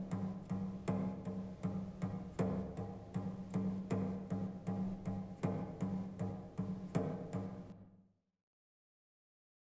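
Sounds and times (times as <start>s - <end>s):
drums: 0.0s - 7.8s.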